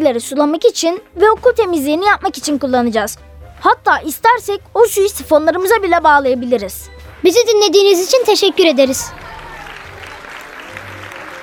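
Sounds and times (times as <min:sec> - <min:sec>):
speech: 0:00.0 - 0:09.3
classroom applause: 0:06.9 - 0:11.4.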